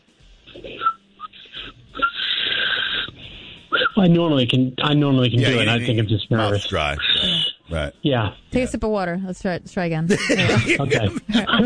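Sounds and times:
speech: 0.6 - 1.0, 4.0 - 11.6
inhaled backwards whistling, wheezy: 0.6 - 4.0, 7.0 - 7.7
laughter: 5.4 - 6.0, 10.0 - 11.6.

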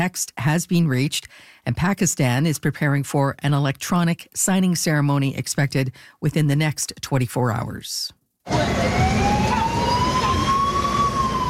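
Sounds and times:
speech: 0.0 - 10.1
UN escort vehicle siren clearing the way: 8.5 - 11.4.

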